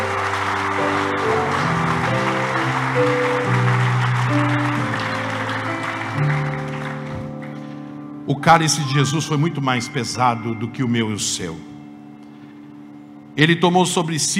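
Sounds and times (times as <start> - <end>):
audience applause: 0.0 - 7.9
speech: 8.3 - 11.7, 13.4 - 14.3.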